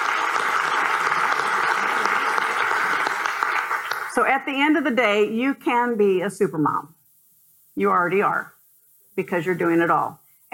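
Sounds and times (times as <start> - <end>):
audience applause: 0.0 - 4.2
speech: 4.2 - 7.0, 7.8 - 8.6, 9.2 - 10.5.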